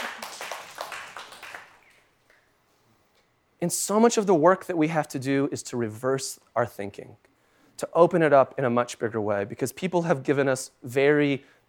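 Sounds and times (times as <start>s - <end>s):
audience clapping: 0.0s - 2.1s
speech: 3.6s - 11.6s.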